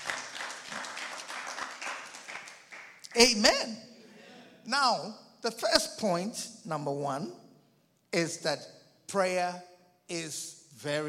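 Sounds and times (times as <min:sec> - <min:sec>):
audience clapping hands: 0:00.0 - 0:03.7
speech: 0:03.2 - 0:03.9, 0:04.7 - 0:07.4, 0:08.1 - 0:11.0.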